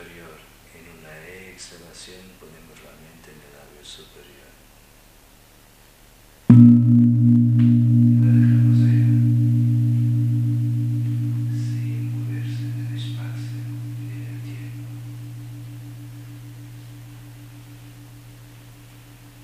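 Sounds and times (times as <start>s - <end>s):
speech: 1.6s - 2.6s, 3.8s - 4.5s
gong strike: 6.5s - 19.4s.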